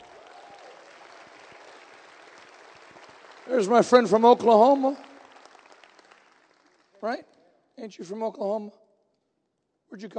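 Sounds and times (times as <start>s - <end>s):
audience clapping: 0.0s - 7.4s
speech: 3.5s - 5.0s, 7.0s - 8.8s, 10.0s - 10.1s.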